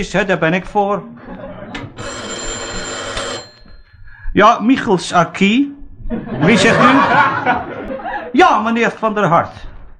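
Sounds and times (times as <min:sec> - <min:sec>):
speech: 0:00.0 - 0:01.3, 0:04.4 - 0:09.7
laughter: 0:01.2 - 0:02.0, 0:06.1 - 0:08.4
telephone ringing with bright electric bell trill: 0:01.8 - 0:04.0.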